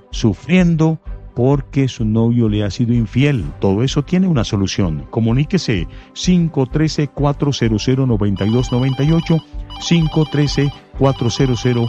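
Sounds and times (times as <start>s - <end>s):
speech: 0.1s - 11.8s
telephone ringtone for an incoming call: 8.4s - 11.8s.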